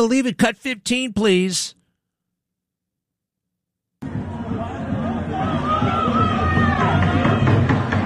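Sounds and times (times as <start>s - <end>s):
speech: 0.0s - 1.8s
protesters yelling and screaming outside homes: 4.2s - 8.0s.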